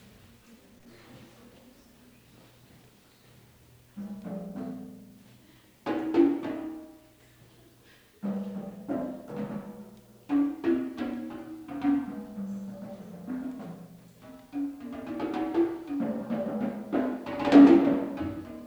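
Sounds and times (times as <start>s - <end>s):
canonic percussion duet: 3.8s - 18.6s.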